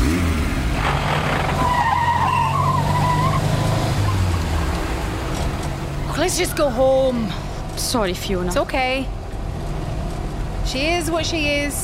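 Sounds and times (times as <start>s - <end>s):
car engine rumbling: 0.0s - 11.8s
car tyres squealing while speeding off: 0.9s - 4.8s
speech: 6.3s - 9.2s, 10.7s - 11.8s.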